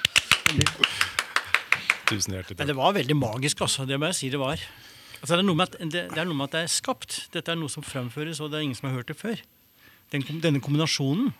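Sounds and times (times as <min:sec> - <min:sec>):
short hectic applause: 0:00.0 - 0:02.5
laughter: 0:00.0 - 0:04.0
speech: 0:00.5 - 0:01.0, 0:02.1 - 0:11.3.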